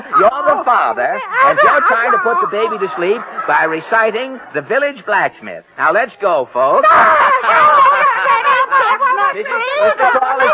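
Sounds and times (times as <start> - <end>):
crowd screaming and laughing: 0.0 - 4.5, 6.6 - 10.5
speech: 0.2 - 7.7, 9.3 - 10.5.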